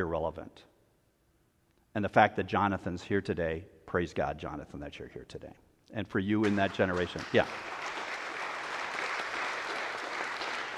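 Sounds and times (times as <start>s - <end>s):
speech: 0.0s - 0.7s, 2.0s - 7.8s
church congregation clapping: 6.4s - 10.7s.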